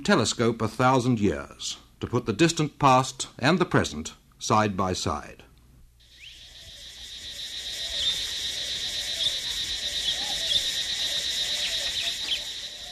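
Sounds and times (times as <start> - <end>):
speech: 0.0 - 5.4
shrill insects in the jungles of western Cambodia: 6.0 - 12.9.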